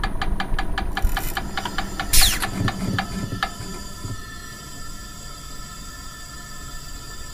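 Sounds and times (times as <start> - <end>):
generator starting up: 0.1 - 4.9.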